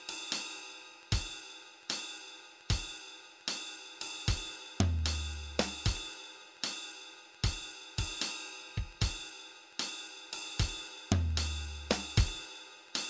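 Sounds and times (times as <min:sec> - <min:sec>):
drum track: 0:00.0 - 0:13.0.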